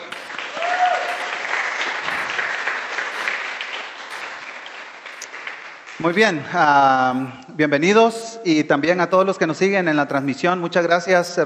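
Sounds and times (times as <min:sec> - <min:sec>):
audience applause: 0:00.0 - 0:06.5
speech: 0:06.0 - 0:11.4.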